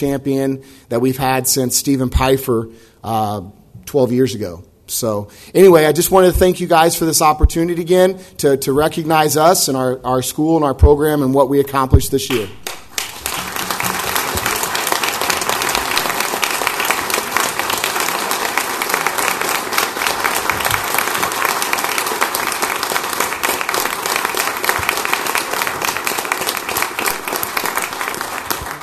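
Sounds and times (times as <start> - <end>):
speech: 0.0 - 12.8
audience applauding: 12.3 - 28.8.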